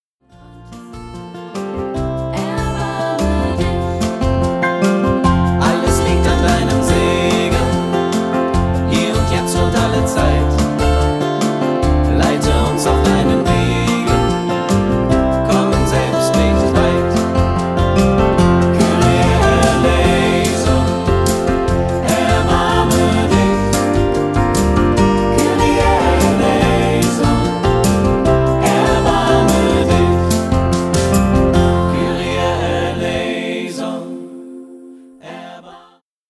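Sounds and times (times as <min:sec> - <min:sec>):
choir singing a chant over a backing track: 0:02.3 - 0:36.0.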